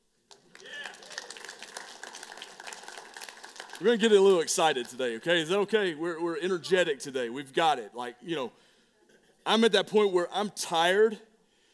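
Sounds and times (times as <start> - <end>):
audience clapping: 0.2 - 5.7
speech: 3.8 - 8.7, 9.5 - 11.3.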